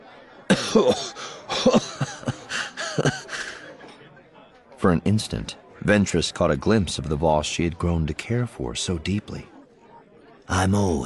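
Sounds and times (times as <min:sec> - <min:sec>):
laughter: 0:00.0 - 0:04.2
man coughing: 0:00.5 - 0:03.6
speech: 0:00.7 - 0:02.2, 0:04.8 - 0:09.6, 0:10.5 - 0:11.0.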